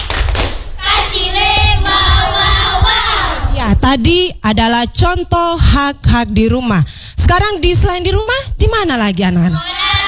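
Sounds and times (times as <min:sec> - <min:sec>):
rhythmic claps and thumps: 0:00.0 - 0:03.2
group of children chanting and shouting a cheer: 0:00.8 - 0:03.5, 0:09.6 - 0:10.0
speech: 0:03.8 - 0:10.0.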